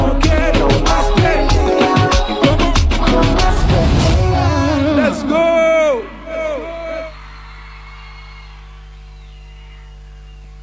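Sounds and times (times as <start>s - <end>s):
singer singing: 0.0s - 7.2s
concert crowd cheering and whooping: 5.2s - 9.1s.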